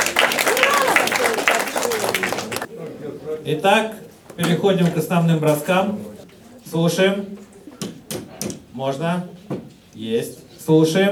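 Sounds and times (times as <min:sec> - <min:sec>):
audience applause: 0:00.0 - 0:02.7
speech: 0:03.4 - 0:06.1, 0:06.7 - 0:07.5, 0:08.8 - 0:09.4, 0:10.0 - 0:11.1.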